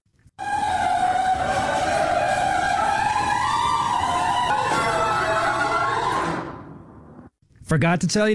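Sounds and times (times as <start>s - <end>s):
old garage door grinding and screeching along its track: 0.4s - 7.1s
speech: 7.7s - 8.3s.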